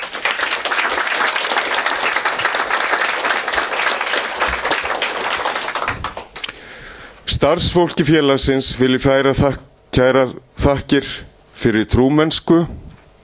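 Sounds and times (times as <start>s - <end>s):
audience applause at an annual meeting of a blind people's association: 0.0s - 6.5s
speech: 7.4s - 12.8s.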